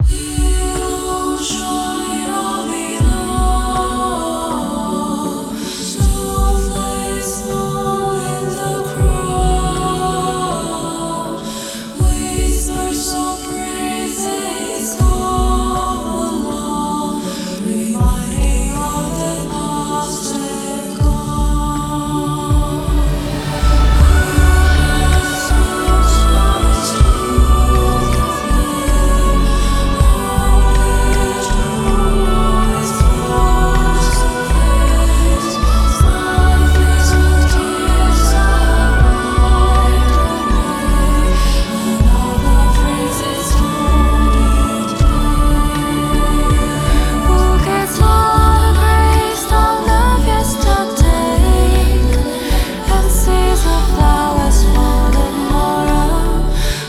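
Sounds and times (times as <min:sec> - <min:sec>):
choir singing: 0:00.0 - 0:56.8.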